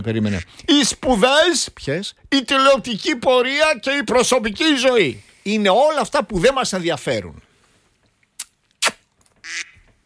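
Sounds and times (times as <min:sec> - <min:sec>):
speech: 0:00.0 - 0:07.4
duck quacking: 0:09.4 - 0:09.8.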